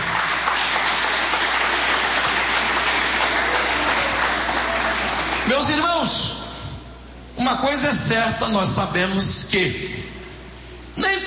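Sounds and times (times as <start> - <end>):
audience clapping hands: 0.0 - 5.8
speech: 5.5 - 6.3, 7.4 - 10.2, 11.0 - 11.2.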